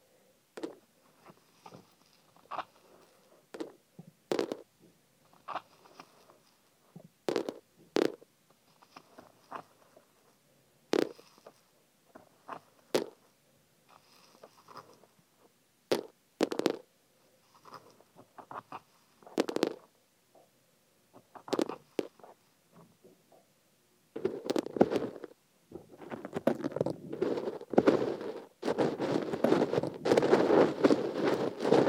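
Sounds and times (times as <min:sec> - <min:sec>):
sesame seeds being put into an ear: 0:00.6 - 0:04.7, 0:05.3 - 0:10.2, 0:10.9 - 0:13.2, 0:13.9 - 0:15.2, 0:15.9 - 0:19.9, 0:21.3 - 0:22.6, 0:24.2 - 0:31.8.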